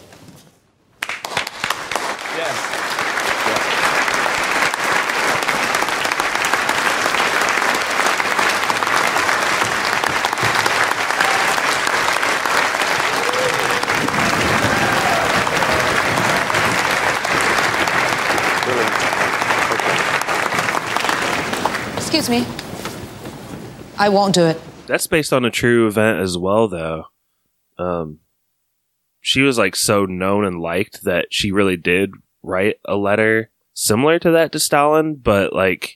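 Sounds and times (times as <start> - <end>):
large audience applause after a concerto: 1.0 - 23.2
speech: 2.4 - 2.9, 22.3 - 22.5, 24.0 - 27.1, 27.8 - 28.2, 29.2 - 35.9.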